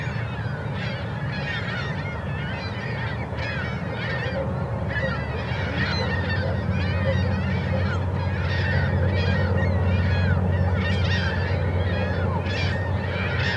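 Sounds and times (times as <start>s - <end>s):
birds in Columbia Park, Kennewick, Washington: 0.0s - 13.5s.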